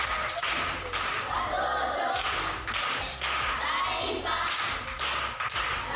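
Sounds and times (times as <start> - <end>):
applause at a primary school proverb contest: 0.0 - 1.3, 2.1 - 3.6, 4.4 - 5.8.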